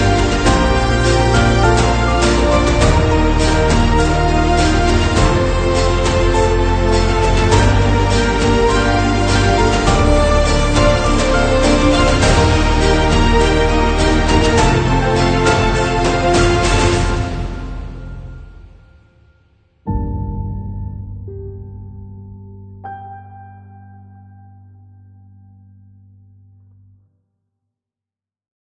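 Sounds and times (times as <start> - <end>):
inspiring cinematic adventure trailer music: 0.0 - 24.7.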